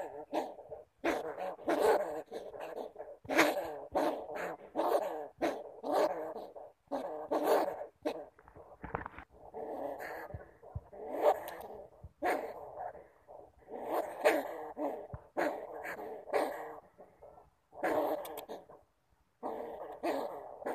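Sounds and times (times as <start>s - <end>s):
bamboo rat giving harsh grating calls: 0.0s - 18.8s, 19.4s - 20.7s
faint clicks: 18.2s - 18.5s.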